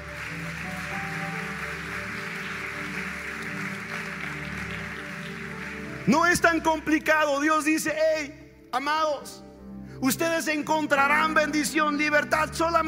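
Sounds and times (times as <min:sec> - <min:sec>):
audience applauding: 0:00.0 - 0:07.1
speech: 0:06.1 - 0:09.4, 0:10.0 - 0:12.8.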